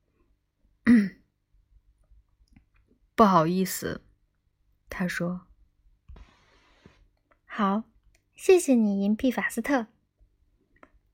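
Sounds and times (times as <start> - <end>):
polite throat clearing: 0.9 - 1.2
speech: 3.2 - 4.1, 5.0 - 5.5, 7.6 - 9.9.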